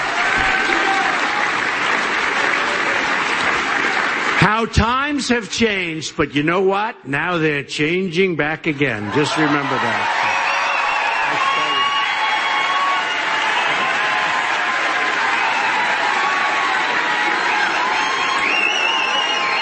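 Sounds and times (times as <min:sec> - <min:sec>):
audience round of applause: 0:00.0 - 0:04.7, 0:09.0 - 0:19.5
speech: 0:04.4 - 0:10.4.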